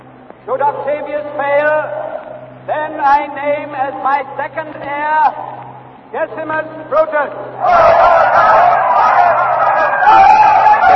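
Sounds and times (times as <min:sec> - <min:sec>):
speech: 0:00.4 - 0:05.5, 0:06.1 - 0:09.2
angry crowd denouncing the conspirators and calling for vengeance: 0:07.5 - 0:10.9.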